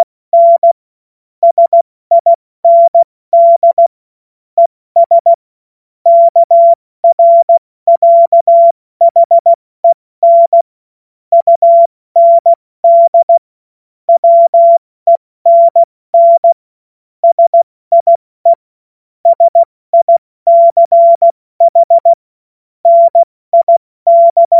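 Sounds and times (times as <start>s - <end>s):
CW Morse code beeps: 0.0s - 0.8s, 1.4s - 3.9s, 5.0s - 5.4s, 6.1s - 10.6s, 11.3s - 13.4s, 14.2s - 16.6s, 17.2s - 18.6s, 19.2s - 22.2s, 22.9s - 24.5s.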